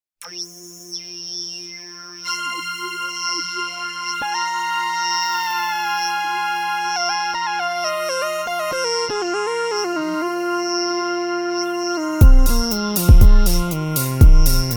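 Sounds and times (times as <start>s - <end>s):
disco music: 2.3s - 10.8s, 11.6s - 14.7s.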